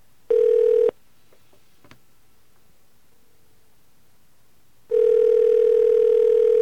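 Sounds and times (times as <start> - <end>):
telephone ringback tone: 0.3 - 0.9, 4.9 - 6.5.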